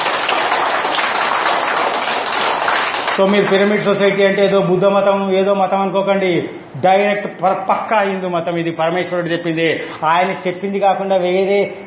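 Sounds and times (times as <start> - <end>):
audience at a meditation talk applauding: 0.0 - 4.0
speech: 3.2 - 11.8.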